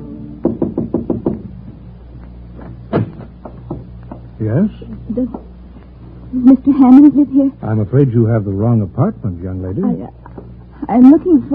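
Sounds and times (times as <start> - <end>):
knocking on a door: 0.4 - 1.9, 2.9 - 4.3
speech: 4.4 - 5.5, 6.3 - 10.2, 10.8 - 11.5.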